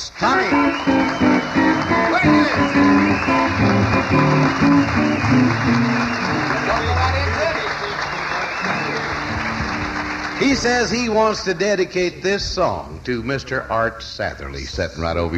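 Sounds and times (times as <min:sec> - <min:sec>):
speech: 0:00.2 - 0:01.2, 0:04.1 - 0:07.0, 0:10.4 - 0:15.3
audience applause: 0:00.3 - 0:11.4.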